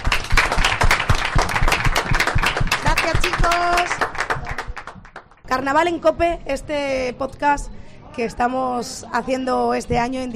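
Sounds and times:
small group clapping in a café bar during a carnival gathering: 0.0 - 5.7
speech: 5.5 - 10.3.

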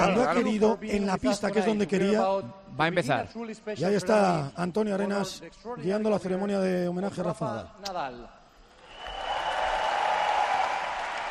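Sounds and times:
speech: 0.1 - 8.4
large indoor arena crowd applause and cheering: 8.7 - 11.2.

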